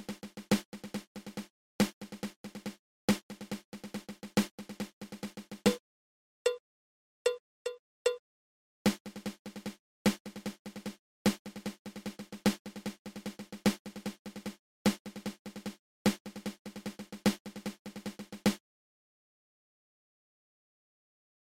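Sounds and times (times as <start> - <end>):
double ratamacue snare drum rudiment: 0.0 - 5.8, 8.9 - 18.6.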